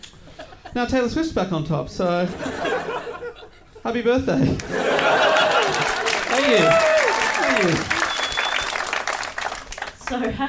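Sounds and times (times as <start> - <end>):
speech: 0.8 - 3.0, 3.8 - 5.4, 6.4 - 6.9, 7.6 - 8.0, 10.1 - 10.4
laughter: 2.3 - 3.7, 4.4 - 8.0
audience applause: 4.6 - 10.2
descending whistle-like tone: 8.0 - 8.8.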